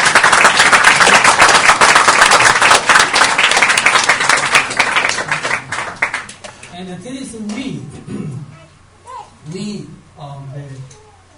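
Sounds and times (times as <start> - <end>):
audience clapping: 0.0 - 6.8
speech: 6.8 - 8.4, 9.5 - 11.0.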